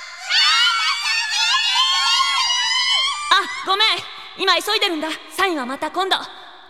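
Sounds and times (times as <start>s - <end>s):
fans screaming and squealing: 0.2s - 3.7s
speech: 3.8s - 6.6s.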